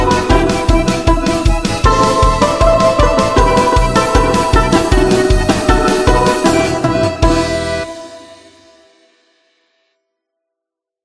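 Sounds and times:
Russian national balalaika music: 0:00.0 - 0:08.8.

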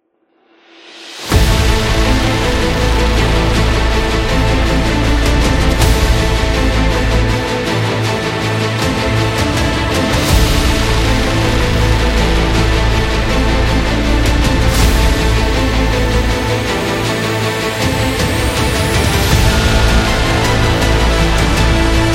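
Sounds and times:
epic action trailer music: 0:00.8 - 0:22.1.

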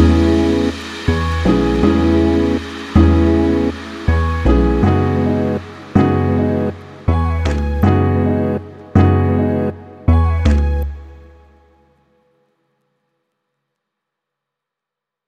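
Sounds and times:
calming lofi chill hop music: 0:00.0 - 0:11.8.

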